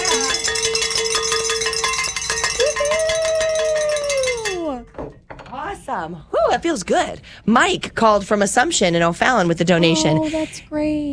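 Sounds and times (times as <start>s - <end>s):
bell rung in celebration: 0.0s - 5.2s
speech: 6.0s - 11.1s.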